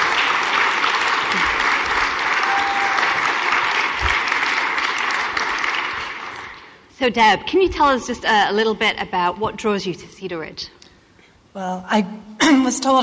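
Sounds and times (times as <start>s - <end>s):
audience applause: 0.0s - 6.8s
speech: 7.0s - 10.8s, 11.6s - 13.0s.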